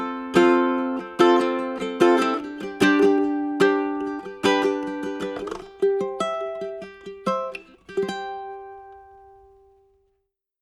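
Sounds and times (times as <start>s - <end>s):
ukulele: 0.0s - 10.0s.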